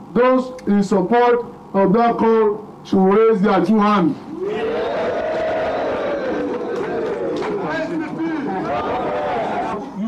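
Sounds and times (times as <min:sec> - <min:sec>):
speech: 0:00.1 - 0:04.6
large rally crowd cheering: 0:04.3 - 0:10.0
shouts: 0:04.3 - 0:10.0.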